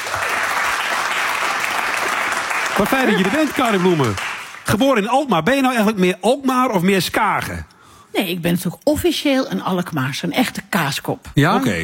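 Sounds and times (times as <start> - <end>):
audience applause for a performer at a live show: 0.0 - 5.0
speech: 2.8 - 11.8.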